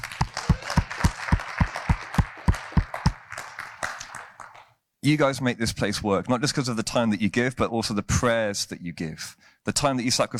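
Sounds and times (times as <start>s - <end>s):
crowd applauding: 0.0s - 4.7s
evenly spaced clapping beat: 0.0s - 4.8s
speech: 5.0s - 10.3s.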